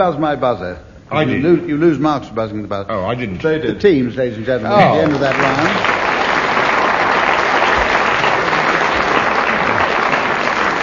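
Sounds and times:
speech: 0:00.0 - 0:06.0
audience applause: 0:04.8 - 0:10.8.

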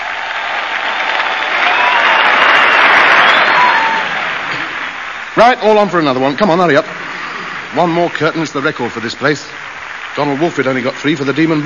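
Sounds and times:
audience applause: 0:00.0 - 0:11.6
speech: 0:05.4 - 0:07.1, 0:07.7 - 0:11.6.

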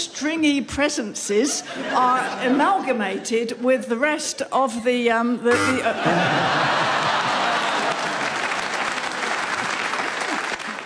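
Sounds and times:
speech: 0:00.2 - 0:06.9
laughter: 0:01.4 - 0:03.2, 0:05.5 - 0:08.5
audience applauding: 0:06.5 - 0:10.8.

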